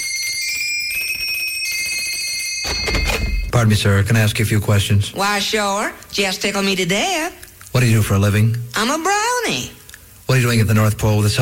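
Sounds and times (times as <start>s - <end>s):
doorbell ringing: 0.0s - 4.1s
speech: 3.6s - 11.4s.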